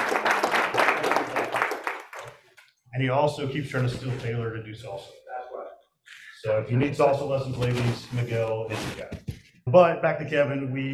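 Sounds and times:
audience applause: 0:00.0 - 0:02.4
speech: 0:03.0 - 0:05.2, 0:06.4 - 0:10.9.

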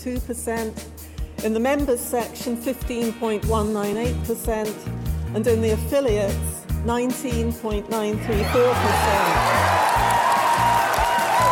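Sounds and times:
speech: 0:00.0 - 0:09.5
applause from a large crowd: 0:08.4 - 0:11.5.

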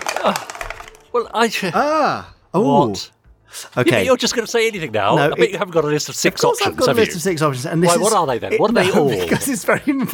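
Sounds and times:
die rattling across a hard surface: 0:00.0 - 0:01.2
speech: 0:00.2 - 0:00.6, 0:01.2 - 0:10.1
laughter: 0:03.8 - 0:04.3, 0:08.7 - 0:10.0.

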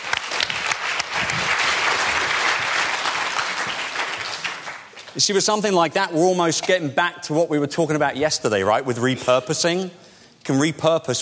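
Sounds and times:
audience clapping: 0:00.0 - 0:05.3
speech: 0:05.2 - 0:11.2.

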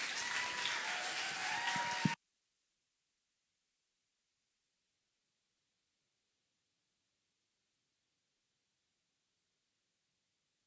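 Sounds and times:
crowd applauding: 0:00.0 - 0:02.2.

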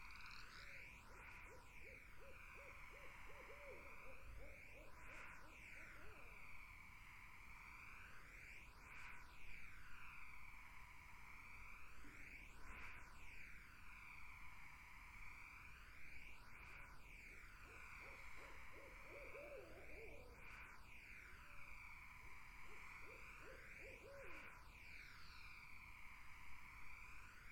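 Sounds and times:
insect drone: 0:00.0 - 0:27.5
barred owl hooting: 0:01.4 - 0:05.2, 0:17.6 - 0:20.4, 0:22.4 - 0:24.5.

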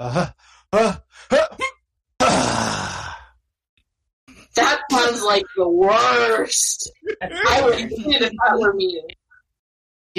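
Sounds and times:
speech: 0:00.0 - 0:01.4, 0:05.1 - 0:09.2
person imitating a half sneeze: 0:00.0 - 0:03.2.

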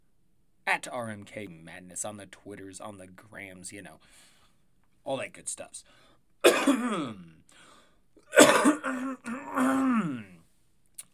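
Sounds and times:
speech: 0:00.7 - 0:04.3, 0:05.0 - 0:07.4, 0:08.4 - 0:10.3
person coughing after smoking marijuana: 0:06.4 - 0:07.3, 0:08.3 - 0:10.4.

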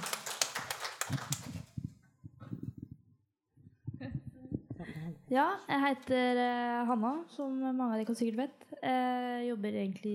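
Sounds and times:
audience applause: 0:00.0 - 0:01.6
speech: 0:05.3 - 0:10.1.

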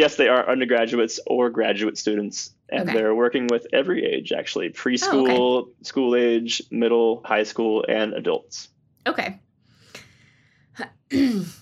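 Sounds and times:
throat clearing: 0:00.0 - 0:05.6
laughter: 0:00.0 - 0:08.4
speech: 0:00.0 - 0:09.4, 0:10.8 - 0:11.6.

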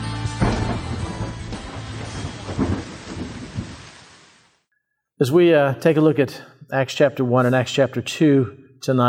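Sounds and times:
steady rain falling: 0:00.4 - 0:04.6
speech: 0:05.2 - 0:09.0.

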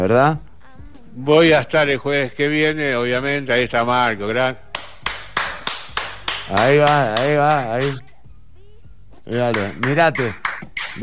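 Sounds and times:
speech: 0:00.0 - 0:00.5, 0:01.2 - 0:04.6, 0:06.5 - 0:08.1, 0:09.3 - 0:10.4
people clapping in a steady rhythmic beat: 0:04.7 - 0:08.0, 0:09.3 - 0:11.0.

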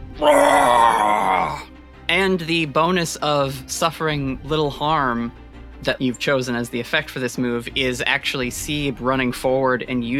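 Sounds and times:
speech: 0:00.2 - 0:01.0, 0:02.2 - 0:10.1
voice imitating a booming bullfrog scream: 0:00.2 - 0:01.7.

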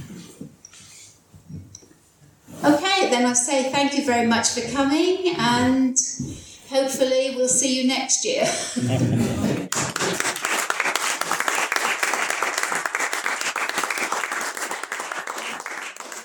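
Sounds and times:
speech: 0:02.6 - 0:09.6
audience applause after a lecture: 0:09.7 - 0:16.2.

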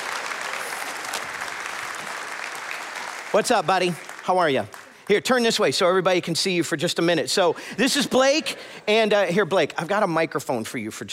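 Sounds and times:
audience applause: 0:00.0 - 0:05.2
speech: 0:03.3 - 0:11.1.

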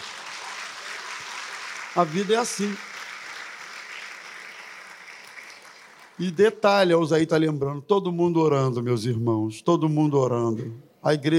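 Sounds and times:
audience applauding: 0:00.0 - 0:06.6
speech: 0:02.0 - 0:02.9, 0:06.2 - 0:11.3.

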